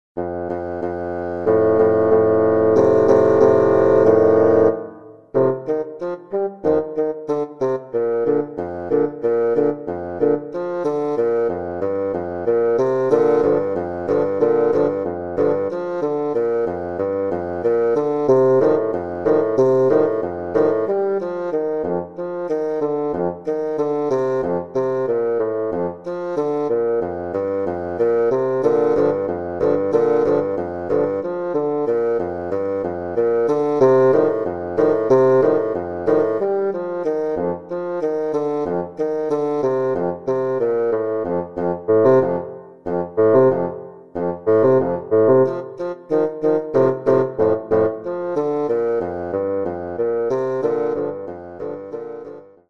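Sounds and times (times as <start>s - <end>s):
polka music: 0.2s - 52.6s.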